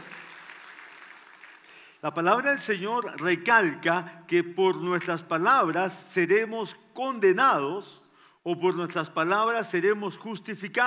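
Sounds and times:
audience applause: 0.0 - 1.9
speech: 2.0 - 10.8.

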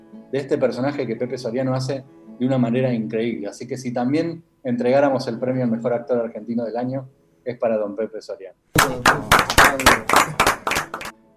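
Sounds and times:
speech: 0.3 - 10.4
audience applause: 8.8 - 11.1.

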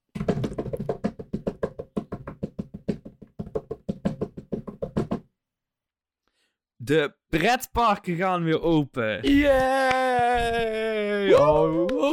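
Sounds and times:
drum-roll fanfare tapping: 0.2 - 5.2
speech: 6.9 - 12.1.

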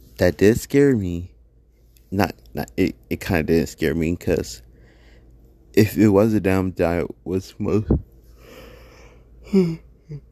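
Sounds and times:
speech: 0.2 - 1.3, 2.1 - 4.6, 5.8 - 8.1, 9.5 - 10.3
person yawning: 9.4 - 10.3.

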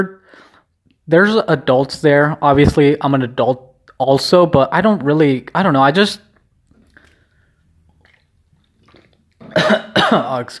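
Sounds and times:
speech: 0.0 - 0.5, 1.1 - 6.3, 9.5 - 10.5
person drinking water: 6.3 - 10.2.

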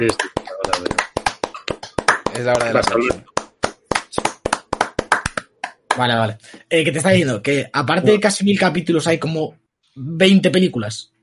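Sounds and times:
speech: 0.0 - 0.2, 2.4 - 3.3, 6.0 - 11.1
sharp hand claps: 0.0 - 6.6.

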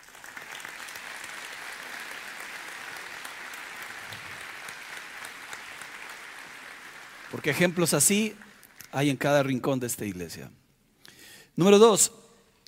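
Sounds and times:
audience applause: 0.0 - 9.1
speech: 7.3 - 10.6, 11.6 - 12.2.

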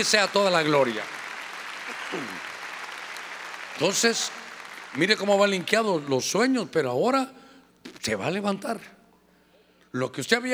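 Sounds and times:
speech: 0.0 - 1.2, 2.1 - 2.5, 3.8 - 9.0, 9.9 - 10.5
audience clapping: 0.0 - 6.6.

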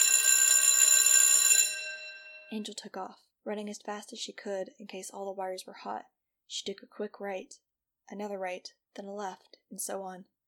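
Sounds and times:
bell clanging: 0.0 - 2.6
speech: 2.5 - 10.4.

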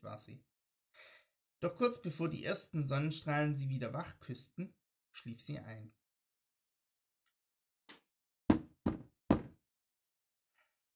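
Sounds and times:
speech: 0.2 - 6.0
heavy knocking on an apartment door: 8.5 - 9.6.

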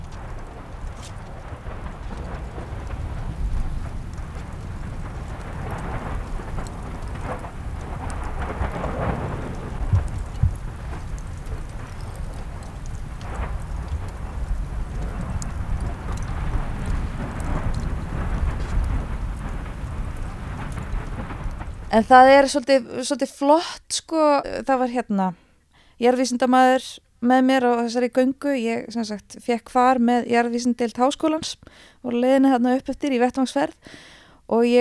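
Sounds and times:
distant rumbling from volcanic crater: 0.0 - 22.6
speech: 22.0 - 25.4, 26.0 - 34.7.

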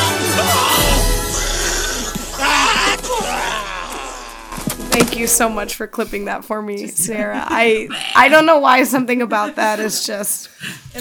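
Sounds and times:
voices imitating go-kart crashing noises: 0.0 - 5.8
speech: 5.2 - 11.0.

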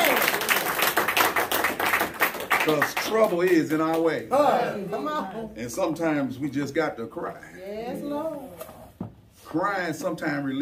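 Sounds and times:
audience clapping hands in praise: 0.0 - 4.2
speech: 2.6 - 8.7, 9.5 - 10.6.

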